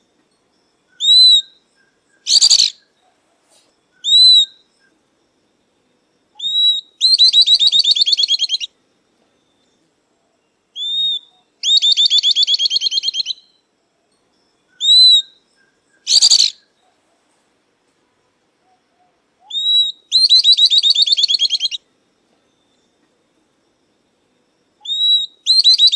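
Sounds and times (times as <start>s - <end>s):
southern beardless-tyrannulet song: 1.0s - 2.9s, 3.6s - 5.0s, 6.4s - 8.7s, 10.8s - 13.6s, 14.8s - 16.7s, 19.4s - 21.8s, 24.8s - 25.9s.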